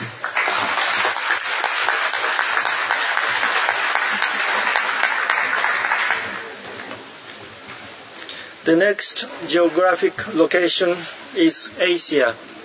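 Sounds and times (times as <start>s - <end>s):
applause from a meeting confirming an election by acclamation: 0.0s - 7.0s
speech: 8.7s - 12.6s.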